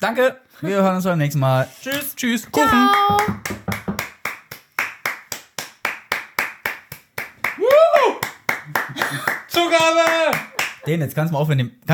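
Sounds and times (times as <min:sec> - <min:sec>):
speech: 0:00.0 - 0:03.5, 0:10.9 - 0:11.9
hand clapping: 0:02.6 - 0:10.9.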